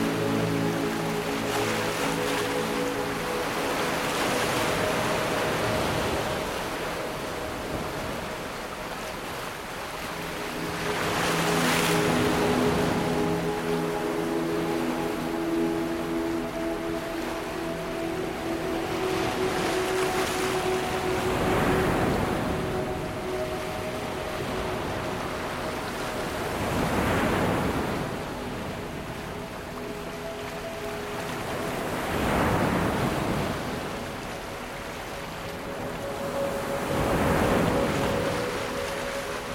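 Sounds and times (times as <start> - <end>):
ocean waves: 0.0 - 39.5
soothing ambient music with 40hz gamma binaural waves: 0.0 - 39.5.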